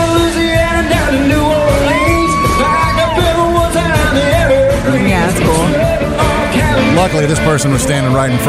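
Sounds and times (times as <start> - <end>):
crowd yelling and cheering: 0.0 - 7.6
phone-recorded live rock song cover: 0.0 - 8.4
bending guitar notes sliding up and down: 4.4 - 8.4
speech: 7.1 - 8.4.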